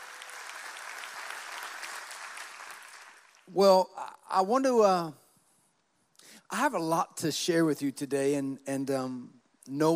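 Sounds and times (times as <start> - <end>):
audience clapping: 0.0 - 3.6
speech: 3.5 - 5.2, 6.5 - 9.9.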